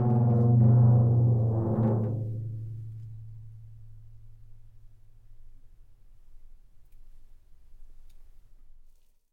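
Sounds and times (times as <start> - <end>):
floor tom drum vibrating under small friction mallet: 0.0 - 4.4.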